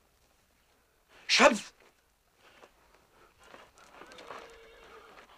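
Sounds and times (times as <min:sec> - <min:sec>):
speech: 0:01.4 - 0:01.7
horse neighing: 0:03.9 - 0:05.3.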